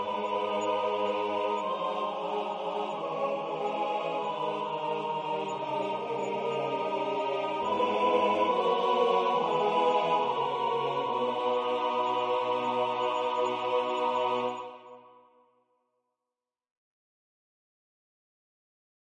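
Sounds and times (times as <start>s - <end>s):
SATB choir singing: 0.0s - 15.2s.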